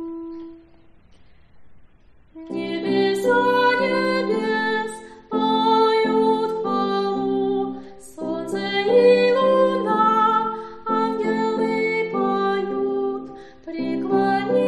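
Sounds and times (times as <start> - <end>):
soprano singing: 2.3 - 14.6.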